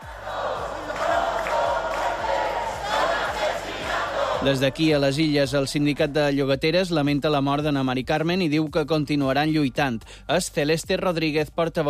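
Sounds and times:
protest crowd shouting accusations: 0:00.0 - 0:04.9
speech: 0:04.4 - 0:11.8.

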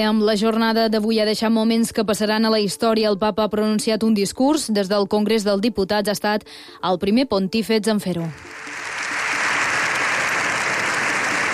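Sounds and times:
speech: 0:00.0 - 0:08.8
standing ovation in parliament: 0:08.3 - 0:11.5.

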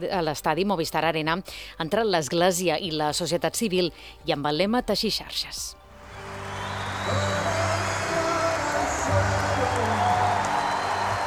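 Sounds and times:
speech: 0:00.0 - 0:05.8, 0:07.1 - 0:07.5
long ovation applause from a large crowd for speech: 0:06.0 - 0:11.2.

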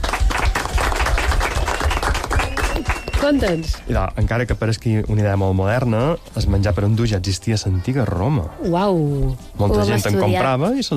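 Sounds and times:
crowd applauding: 0:00.0 - 0:03.9
speech: 0:03.2 - 0:10.9.

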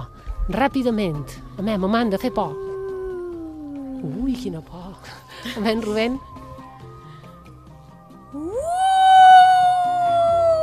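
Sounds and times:
voice imitating an ambulance siren: 0:00.0 - 0:04.4, 0:08.4 - 0:10.6
speech: 0:00.5 - 0:02.6, 0:04.0 - 0:06.4.

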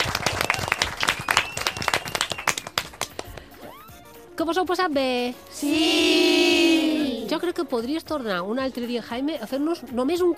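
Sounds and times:
crowd applause: 0:00.0 - 0:03.2
faint whistle-like tone: 0:01.1 - 0:02.7
speech: 0:04.4 - 0:10.3.

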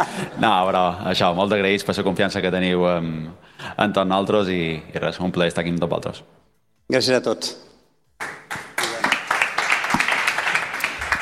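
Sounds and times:
speech: 0:00.0 - 0:08.3
audience applause: 0:08.2 - 0:11.2.

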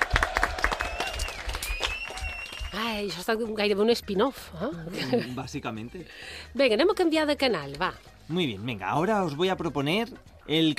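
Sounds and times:
live audience applause: 0:00.0 - 0:02.8
speech: 0:02.7 - 0:10.7.

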